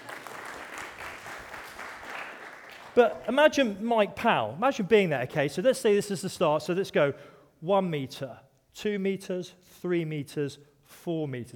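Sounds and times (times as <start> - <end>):
onlookers clapping after a long-jump demonstration: 0.0 - 3.4
speech: 3.0 - 11.5.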